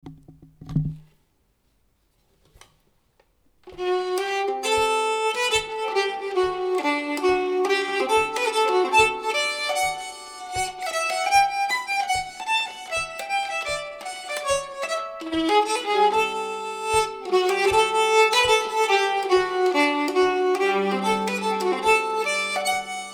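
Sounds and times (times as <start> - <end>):
folk walking tune: 3.6 - 23.1.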